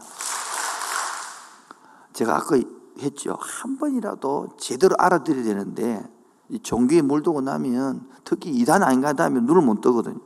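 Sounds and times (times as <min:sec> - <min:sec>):
audience clapping: 0:00.0 - 0:01.8
speech: 0:02.2 - 0:10.2.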